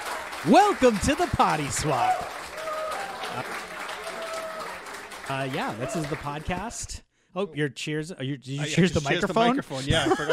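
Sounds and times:
applause: 0:00.0 - 0:06.9
speech: 0:00.4 - 0:02.4, 0:03.4 - 0:03.7, 0:05.3 - 0:10.3
laughter: 0:09.2 - 0:10.3.

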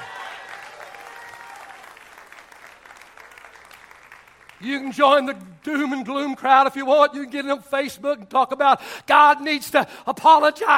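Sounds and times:
audience shouts of praise: 0:00.0 - 0:01.9
audience clapping: 0:00.0 - 0:06.8
speech: 0:04.6 - 0:10.7.

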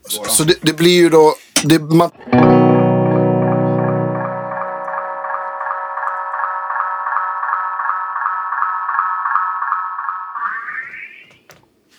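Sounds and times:
speech: 0:00.1 - 0:02.6
buzzy electronic tone through tape-style echo: 0:02.4 - 0:11.2.

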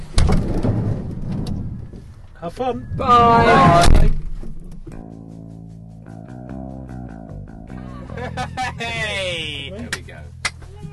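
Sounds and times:
door being opened: 0:00.0 - 0:05.0
speech: 0:02.4 - 0:04.2, 0:08.4 - 0:10.0
laughter: 0:07.7 - 0:09.8.

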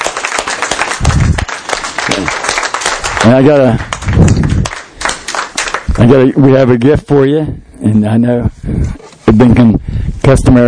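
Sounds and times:
audience applause: 0:00.0 - 0:06.3
speech: 0:02.1 - 0:02.4, 0:03.2 - 0:04.4, 0:06.0 - 0:10.6.

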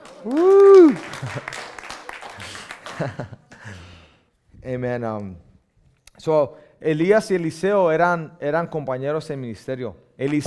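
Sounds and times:
audience applause: 0:00.0 - 0:03.2
speech: 0:00.2 - 0:01.7, 0:03.0 - 0:03.4, 0:04.6 - 0:05.5, 0:06.2 - 0:10.4.

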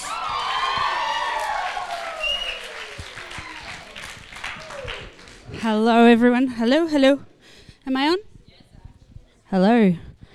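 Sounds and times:
voices cheering and whooping: 0:00.0 - 0:05.6
crowd applauding: 0:00.0 - 0:05.9
speech: 0:05.6 - 0:07.3, 0:07.9 - 0:08.3, 0:09.5 - 0:10.1.

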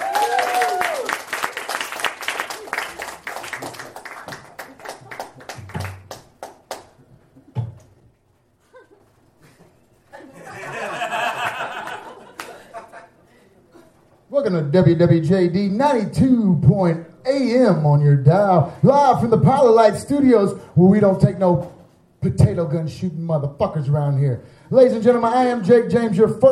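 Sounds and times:
studio audience applause greeting the new host: 0:00.0 - 0:06.8
crowd noise with laughter: 0:08.6 - 0:13.9
speech: 0:14.4 - 0:26.4.

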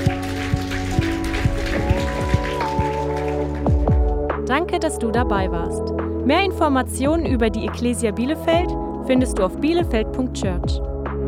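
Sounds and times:
big audience applause: 0:00.0 - 0:04.1
speech: 0:04.5 - 0:11.2.

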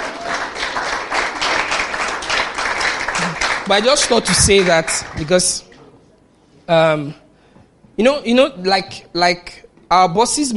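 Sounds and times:
clapping: 0:00.0 - 0:05.5
speech: 0:03.7 - 0:05.7, 0:06.7 - 0:07.2, 0:08.0 - 0:10.5.

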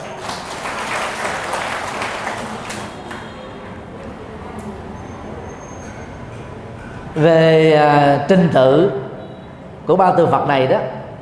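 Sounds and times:
audience applause: 0:00.0 - 0:03.4
speech: 0:07.2 - 0:09.0, 0:09.9 - 0:11.0.

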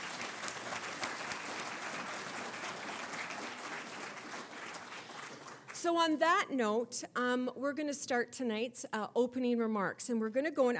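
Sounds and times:
audience applause: 0:00.0 - 0:05.8
speech: 0:05.8 - 0:10.7.

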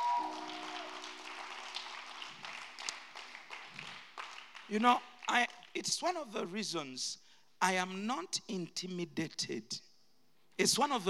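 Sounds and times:
crowd and audience hand clapping: 0:00.0 - 0:05.8
speech: 0:04.7 - 0:09.9, 0:10.6 - 0:11.0.

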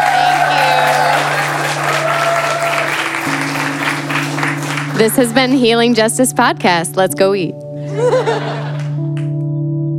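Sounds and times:
audience applause: 0:00.0 - 0:05.9, 0:08.6 - 0:09.3
speech: 0:05.0 - 0:08.5
laughter: 0:07.9 - 0:09.0.

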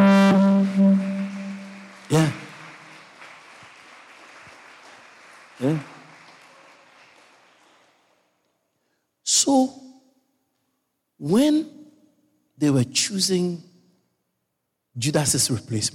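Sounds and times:
sustained low tone: 0:00.0 - 0:02.1
audience clapping: 0:00.0 - 0:08.6
speech: 0:02.1 - 0:02.4, 0:12.6 - 0:13.7, 0:15.0 - 0:15.9.

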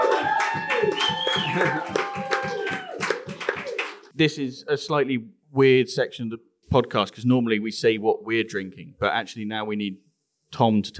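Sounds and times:
applause from a bar audience welcoming the bar's host: 0:00.0 - 0:04.1
speech: 0:01.6 - 0:02.0, 0:04.2 - 0:10.9.

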